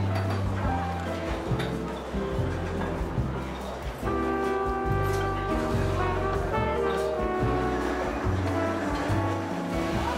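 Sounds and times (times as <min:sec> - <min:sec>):
murmur of voices: 0:00.0 - 0:10.1
soft background music in a seaside cafe: 0:00.0 - 0:10.1.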